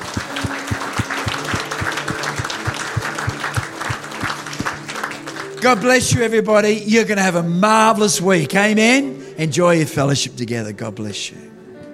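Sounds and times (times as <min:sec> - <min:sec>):
low rhythmic beat: 0:00.0 - 0:04.8
audience applause: 0:00.0 - 0:05.6
speech: 0:05.6 - 0:11.6.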